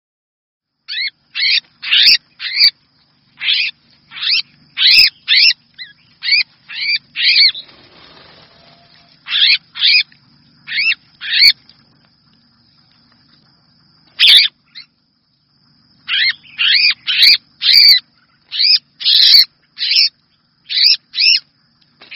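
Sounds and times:
red-whiskered bulbul distress call: 0.9 - 2.8, 3.4 - 10.1, 10.7 - 11.6, 14.2 - 15.0, 16.0 - 20.1, 20.7 - 21.4.

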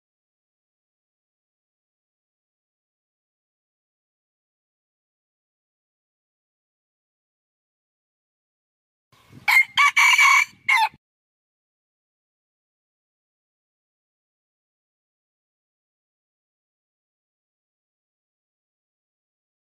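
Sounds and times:
red junglefowl crowing: 9.5 - 11.0.

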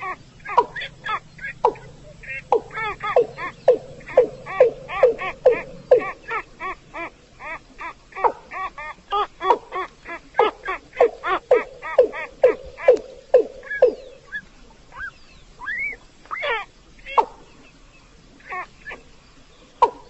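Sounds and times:
rail calling: 0.0 - 16.6.

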